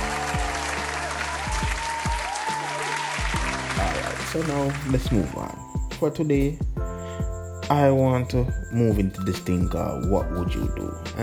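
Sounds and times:
round of applause: 0.0 - 5.0
speech: 4.3 - 6.7, 7.7 - 11.2.

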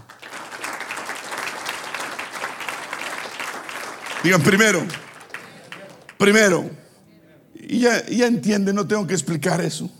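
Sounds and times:
audience applause: 0.0 - 6.4
speech: 4.2 - 5.0, 6.2 - 6.8, 7.7 - 9.9.

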